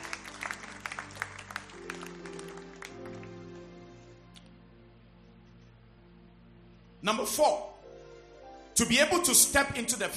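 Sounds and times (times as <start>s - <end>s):
audience clapping hands: 0.0s - 3.8s
sustained low organ-like chords: 0.0s - 10.1s
speech: 7.0s - 7.7s, 8.8s - 10.1s.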